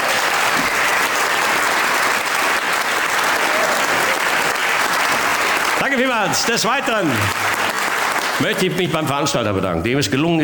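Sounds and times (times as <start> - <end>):
audience applause: 0.0 - 9.6
speech: 6.0 - 7.5, 8.4 - 10.4.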